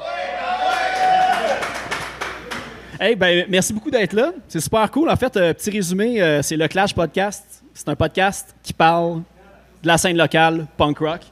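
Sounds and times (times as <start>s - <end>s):
long rising whoop: 0.0s - 1.8s
crowd clapping: 0.5s - 2.8s
speech: 3.0s - 11.2s.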